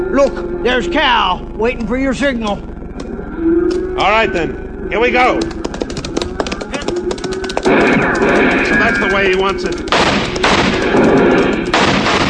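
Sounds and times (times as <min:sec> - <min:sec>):
speech: 0:00.1 - 0:02.7, 0:03.4 - 0:05.6, 0:08.4 - 0:10.0
gunfire in a shootout: 0:05.3 - 0:12.2.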